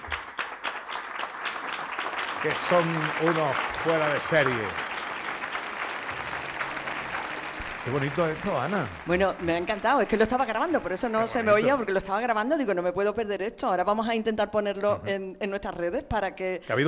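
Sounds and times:
audience applause: 0:00.0 - 0:12.2
speech: 0:02.4 - 0:04.8, 0:07.9 - 0:16.8.

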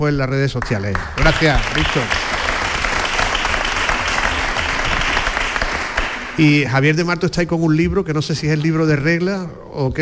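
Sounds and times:
speech: 0:00.0 - 0:02.3, 0:06.4 - 0:10.0
audience applause: 0:00.6 - 0:06.7.

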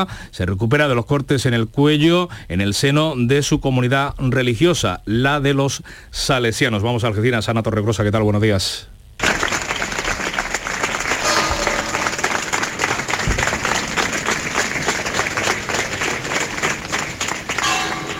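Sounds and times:
speech: 0:00.0 - 0:08.9
crowd applauding outdoors: 0:09.2 - 0:18.1.

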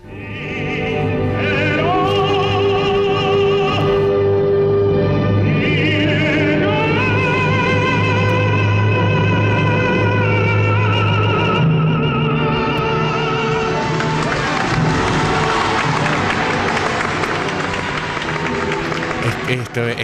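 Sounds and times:
held operatic voice: 0:00.0 - 0:20.0
orchestral music: 0:00.0 - 0:20.0
large audience ovation at a live opera: 0:13.4 - 0:20.0
cheering: 0:13.8 - 0:20.0.

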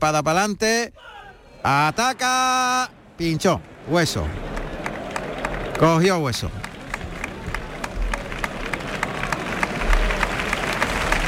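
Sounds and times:
speech: 0:00.0 - 0:04.5, 0:05.8 - 0:06.6
bullfight crowd murmur: 0:01.0 - 0:11.2
bullfight audience clapping to encourage the matador: 0:03.2 - 0:11.2.

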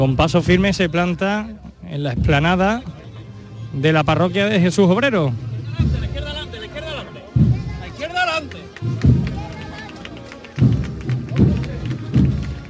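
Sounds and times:
speech: 0:00.0 - 0:03.0, 0:03.7 - 0:05.5
crowd applauding: 0:07.8 - 0:12.6.

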